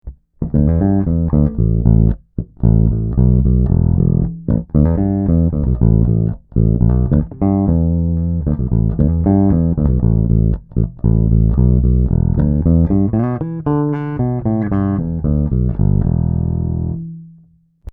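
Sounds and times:
Harley Benton BZ 5000 passive bass guitar played fingerstyle: 0.0s - 17.9s.

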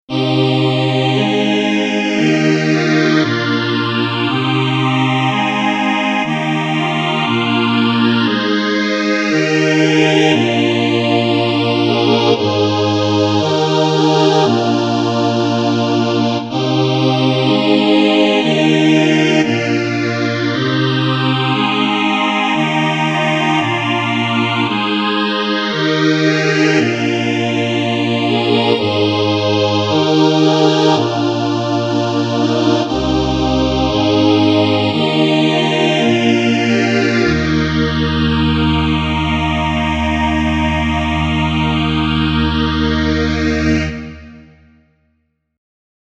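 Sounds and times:
Nord Grand and Crumar Performer keyboards with phaser: 0.1s - 44.6s.

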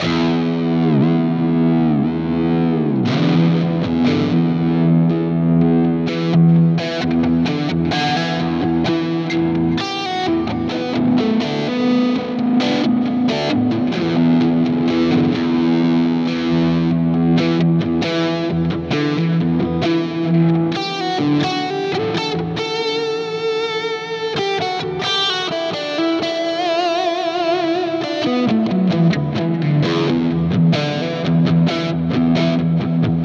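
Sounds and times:
electric guitar with ambient crunch tone: 0.0s - 33.2s.

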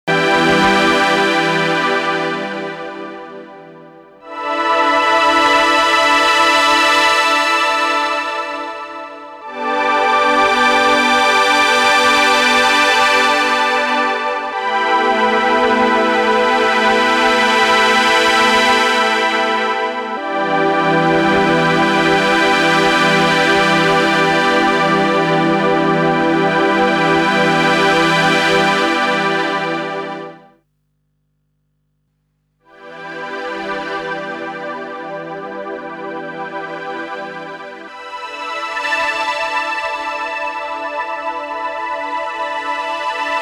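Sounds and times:
string ensemble with chorus effect: 0.1s - 30.4s, 32.9s - 43.4s.

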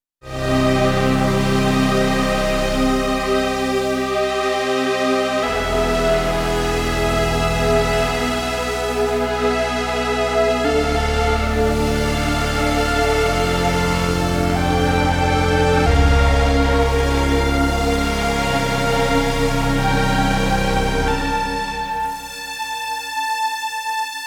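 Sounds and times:
string machine synth patch: 0.3s - 24.2s.

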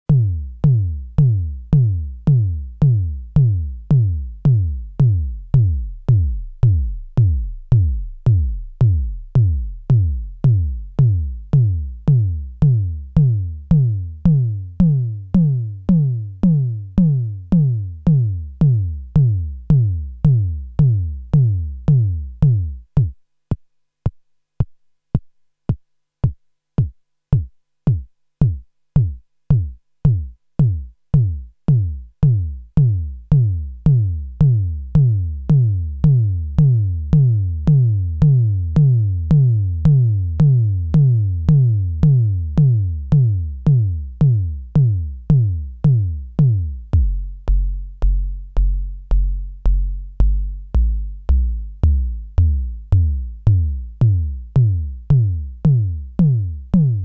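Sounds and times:
AVP synth bass drum: 0.1s - 23.2s, 26.8s - 57.0s.

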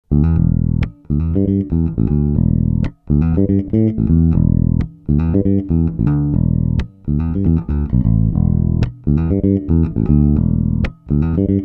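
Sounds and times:
electric guitar on both pickups: 0.1s - 11.6s.

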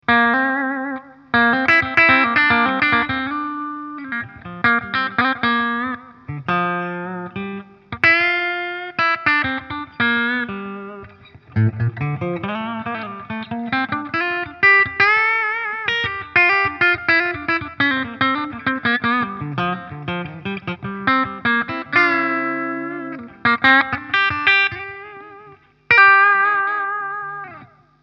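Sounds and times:
Framus Idolmaker clean electric guitar: 0.0s - 28.0s.

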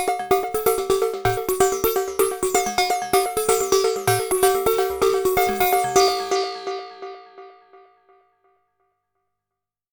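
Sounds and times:
Xaoc Devices Sofia ripple percussion: 0.1s - 6.4s.

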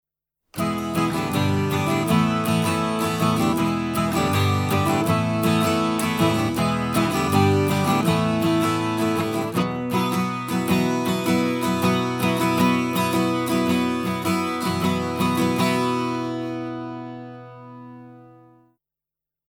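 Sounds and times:
12-string guitar: 0.5s - 18.7s.

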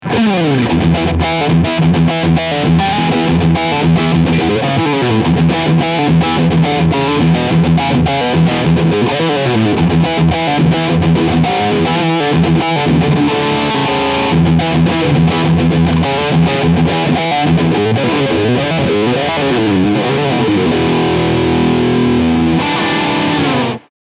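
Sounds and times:
Peavey HP2 guitar riff with Steg pickup: 0.0s - 23.9s.

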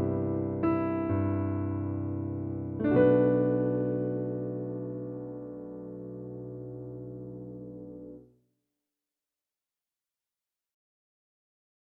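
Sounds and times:
Roland RD2000 Stage Grand V piano: 0.0s - 8.3s.

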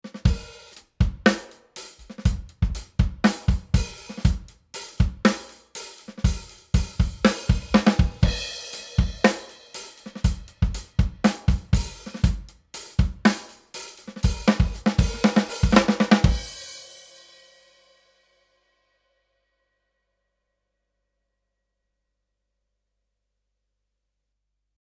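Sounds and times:
drum beat: 0.0s - 16.9s.

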